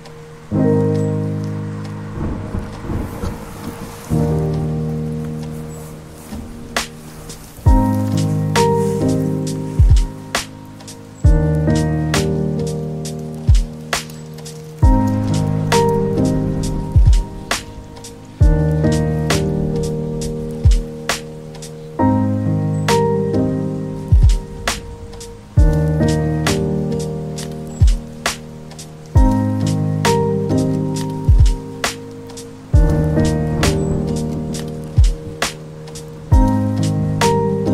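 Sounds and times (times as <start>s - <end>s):
music: 0.0s - 37.7s
rain: 0.0s - 37.7s
thunder: 2.0s - 4.8s, 14.8s - 21.3s, 24.1s - 28.4s, 32.8s - 35.6s.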